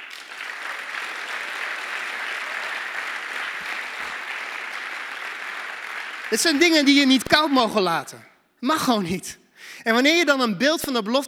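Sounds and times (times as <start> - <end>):
audience applause: 0.0 - 7.8
speech: 6.3 - 11.2.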